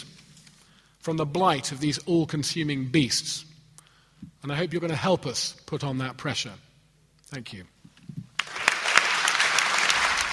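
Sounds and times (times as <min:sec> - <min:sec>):
speech: 0:01.0 - 0:03.5, 0:04.4 - 0:06.7, 0:07.3 - 0:07.8
audience applause at a public event: 0:08.4 - 0:10.3.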